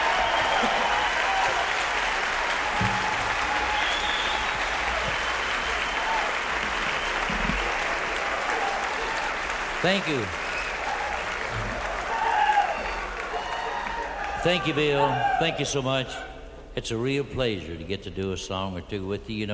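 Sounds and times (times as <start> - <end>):
audience applause welcoming a singer onto the stage: 0.0 - 15.4
speech: 9.8 - 10.4, 14.4 - 19.5.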